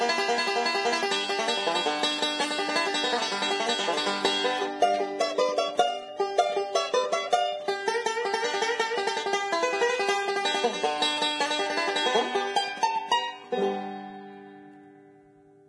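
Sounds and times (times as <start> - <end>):
banjo playing: 0.0 - 15.6.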